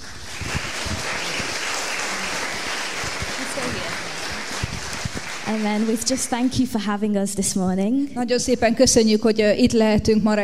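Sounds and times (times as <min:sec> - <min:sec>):
clap offering to the Lord Jesus: 0:00.0 - 0:06.8
speech: 0:05.5 - 0:10.4.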